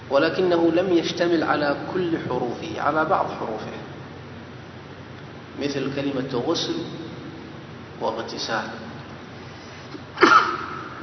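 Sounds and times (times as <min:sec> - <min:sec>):
speech: 0:00.1 - 0:03.9, 0:05.6 - 0:07.0, 0:08.0 - 0:08.9
person sneezing: 0:09.9 - 0:11.0.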